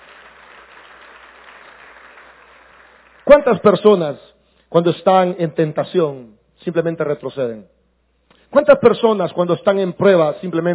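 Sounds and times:
audience applause: 0.0s - 3.3s
speech: 3.3s - 7.8s, 8.5s - 10.7s.

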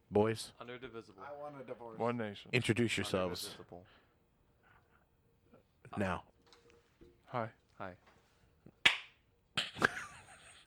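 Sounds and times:
speech: 0.1s - 4.0s, 5.9s - 6.3s, 7.3s - 8.1s
hand clap: 8.8s - 10.1s.

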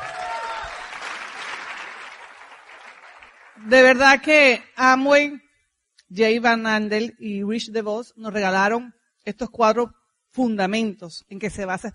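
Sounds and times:
loud audience applause: 0.0s - 3.6s
speech: 3.6s - 5.4s, 6.1s - 11.9s.

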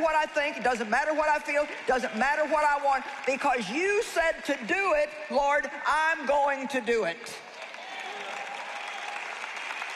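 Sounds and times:
audience clapping: 0.0s - 4.7s, 7.4s - 9.9s
speech: 0.0s - 7.5s.

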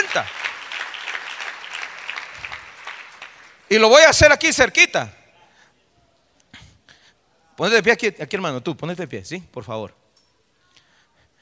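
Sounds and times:
church congregation clapping: 0.0s - 4.7s
speech: 0.2s - 0.4s, 3.7s - 5.2s, 7.6s - 10.0s.

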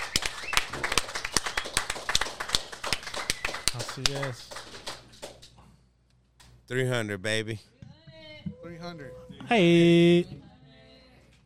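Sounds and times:
audience applause: 0.0s - 5.4s
speech: 4.0s - 4.6s, 6.7s - 7.7s, 8.4s - 10.4s.

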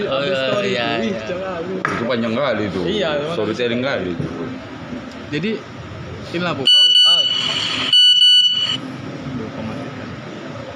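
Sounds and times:
speech: 0.0s - 4.7s, 5.3s - 6.7s
phone ringing: 6.7s - 8.8s.

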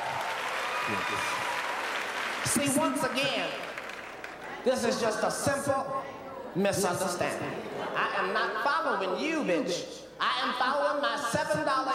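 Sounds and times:
audience clapping: 0.0s - 4.7s
speech: 0.8s - 1.6s, 2.4s - 3.7s, 4.6s - 11.9s.

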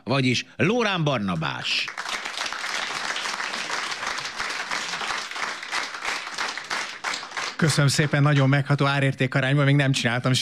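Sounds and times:
speech: 0.1s - 2.1s, 7.6s - 10.4s
audience applause: 1.9s - 8.3s.

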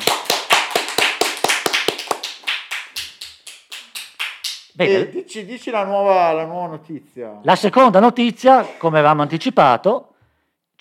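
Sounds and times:
applause: 0.0s - 4.6s
speech: 4.8s - 10.1s.

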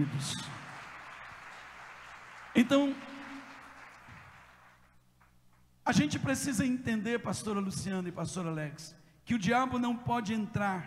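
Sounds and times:
speech: 0.0s - 0.5s, 2.6s - 3.1s, 5.9s - 10.8s
audience applause: 0.0s - 5.0s.

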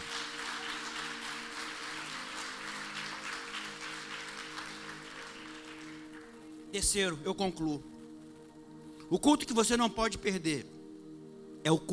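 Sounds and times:
audience applauding: 0.0s - 6.7s
speech: 6.7s - 7.9s, 9.1s - 10.7s, 11.6s - 11.9s.

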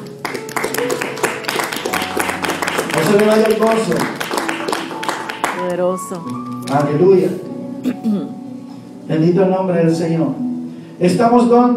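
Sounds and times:
crowd applauding: 0.0s - 7.4s
speech: 3.1s - 4.2s, 5.6s - 8.4s, 9.1s - 11.7s.

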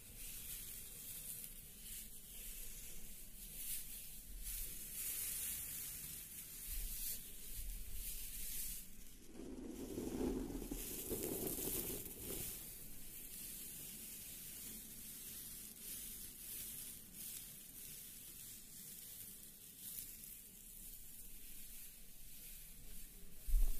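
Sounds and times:
hair roll: 1.0s - 20.9s.

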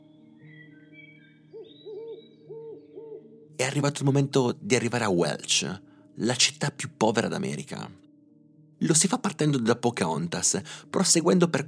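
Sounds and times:
owls hooting at nightfall: 0.4s - 3.6s
speech: 1.6s - 8.0s, 8.8s - 11.6s.

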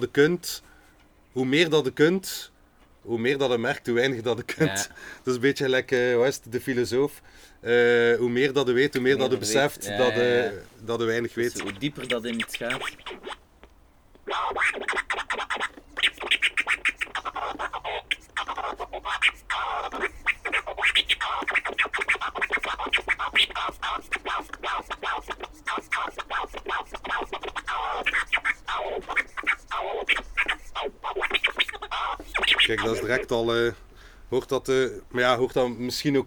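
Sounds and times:
speech: 0.0s - 0.7s, 1.3s - 13.4s, 21.1s - 36.2s
laughter: 4.5s - 5.0s, 32.8s - 33.2s
DJ turntable scratching: 11.4s - 13.4s, 14.2s - 33.3s.

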